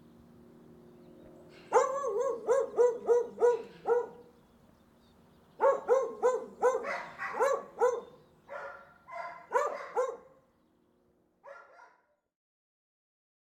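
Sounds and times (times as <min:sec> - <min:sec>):
dog barking: 0:01.7 - 0:04.3, 0:05.6 - 0:10.4, 0:11.4 - 0:12.2.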